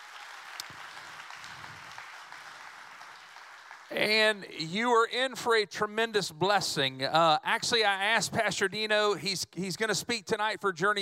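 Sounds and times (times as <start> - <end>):
church congregation clapping to welcome online viewers: 0.0 - 4.7
speech: 3.9 - 11.0.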